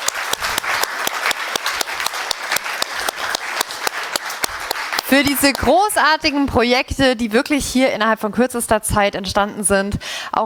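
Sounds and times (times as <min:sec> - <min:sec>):
audience applause: 0:00.0 - 0:05.8
speech: 0:05.1 - 0:10.4.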